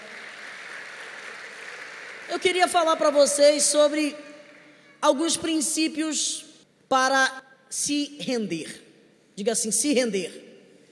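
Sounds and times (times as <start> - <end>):
audience applause: 0.0 - 3.6
speech: 2.3 - 4.3, 5.0 - 10.5.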